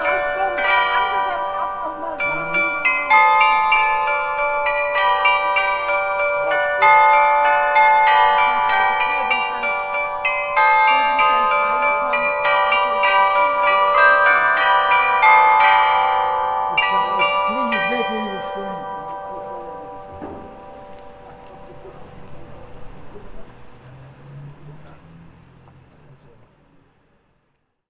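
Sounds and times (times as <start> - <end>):
glockenspiel: 0.0 - 22.0.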